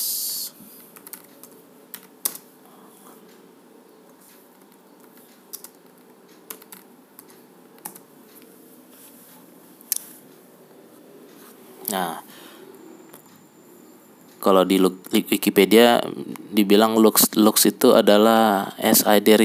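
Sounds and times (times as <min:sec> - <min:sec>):
typing on a computer keyboard: 0:01.0 - 0:02.5, 0:04.2 - 0:08.1
speech: 0:11.9 - 0:12.2, 0:14.4 - 0:19.4.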